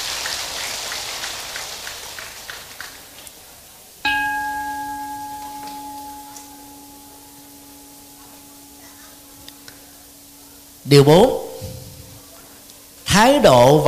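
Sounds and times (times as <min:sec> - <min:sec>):
crowd applauding: 0:00.0 - 0:03.4
sustained electronic tone: 0:04.1 - 0:12.6
speech: 0:10.9 - 0:11.4, 0:13.2 - 0:13.8.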